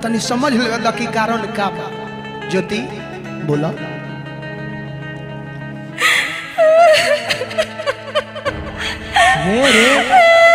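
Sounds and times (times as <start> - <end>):
speech: 0.0 - 4.0, 9.4 - 10.5
woman crying: 5.9 - 10.5.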